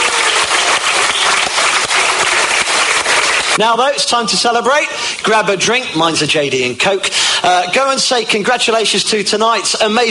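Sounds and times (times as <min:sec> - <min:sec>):
crowd applause: 0:00.0 - 0:03.6
speech: 0:03.6 - 0:10.0.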